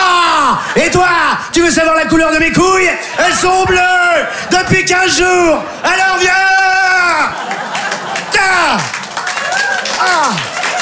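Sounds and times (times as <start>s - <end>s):
speech: 0.8s - 7.7s, 10.0s - 10.6s
laughter: 5.6s - 10.8s
audience clapping: 7.2s - 10.8s.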